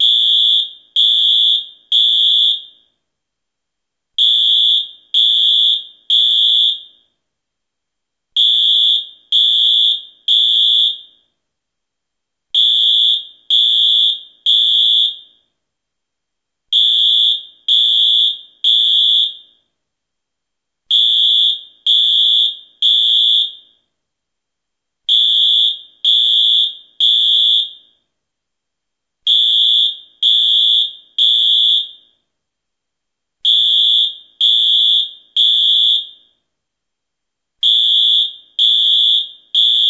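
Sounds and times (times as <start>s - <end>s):
fire alarm: 0.0s - 3.1s, 4.2s - 7.2s, 8.3s - 11.4s, 12.5s - 15.6s, 16.7s - 19.8s, 20.9s - 24.0s, 25.0s - 28.1s, 29.2s - 32.3s, 33.4s - 36.5s, 37.6s - 39.8s.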